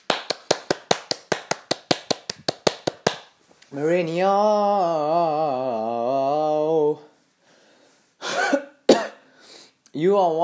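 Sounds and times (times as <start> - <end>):
hand clapping: 0.0 - 3.4
speech: 3.7 - 7.0, 10.0 - 10.4.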